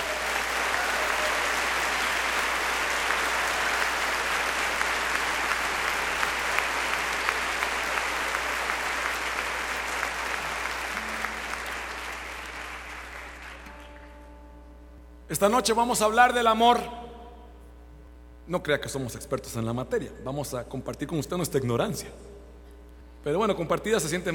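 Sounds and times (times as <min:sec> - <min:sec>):
audience applause: 0:00.0 - 0:14.2
speech: 0:15.3 - 0:17.0, 0:18.5 - 0:22.3, 0:23.2 - 0:24.3.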